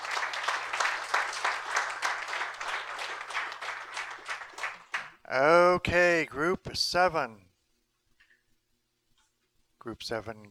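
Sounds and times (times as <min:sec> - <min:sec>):
group applause: 0:00.0 - 0:05.2
speech: 0:05.3 - 0:07.5, 0:09.8 - 0:10.5.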